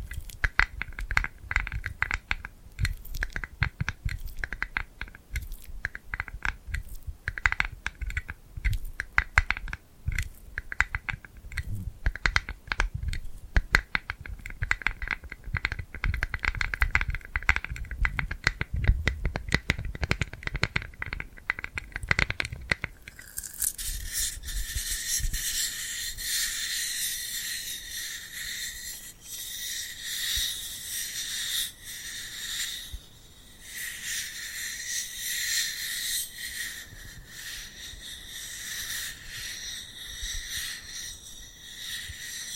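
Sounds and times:
bright crackling hiss: 0:00.0 - 0:42.5
sticky clicks of glued hands: 0:00.0 - 0:42.5
soft low thumps: 0:11.6 - 0:12.0.

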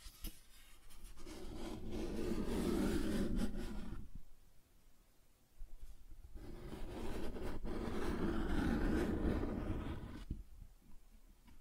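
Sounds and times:
cardboard scratched and rubbed: 0:00.0 - 0:04.1, 0:06.4 - 0:10.2.

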